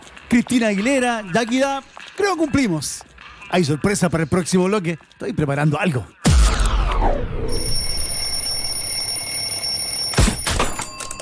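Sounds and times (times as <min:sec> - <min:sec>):
speech: 0:00.3 - 0:06.2, 0:07.0 - 0:07.8
alarm clock ringing: 0:07.5 - 0:11.2.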